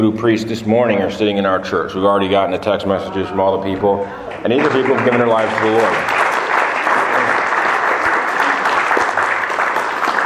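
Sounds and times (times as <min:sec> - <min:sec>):
speech: 0:00.0 - 0:06.2
large crowd applauding: 0:04.2 - 0:10.2.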